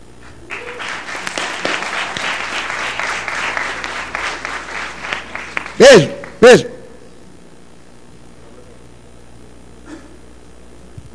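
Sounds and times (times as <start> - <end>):
audience applause: 0.4 - 6.4
speech: 5.9 - 6.7.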